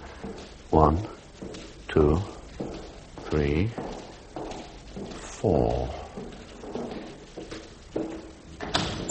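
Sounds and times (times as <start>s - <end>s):
speech: 0.7s - 1.2s, 2.0s - 2.4s, 3.3s - 3.9s, 5.4s - 6.0s
door opening: 8.5s - 9.0s.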